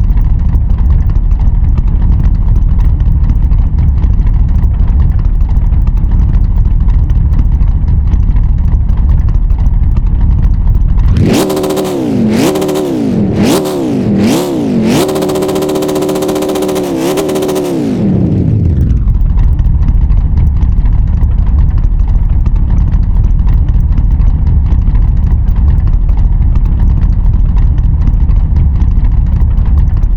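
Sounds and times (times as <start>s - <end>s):
cars idling: 0.0s - 30.1s.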